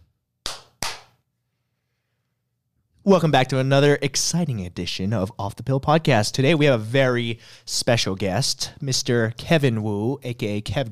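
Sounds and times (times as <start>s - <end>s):
hand clapping: 0.4s - 1.2s
speech: 3.0s - 10.8s.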